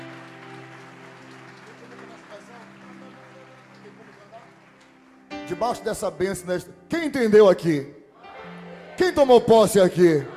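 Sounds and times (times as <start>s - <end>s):
audience applauding: 0.0s - 5.8s
speech: 5.5s - 8.0s, 9.0s - 10.3s.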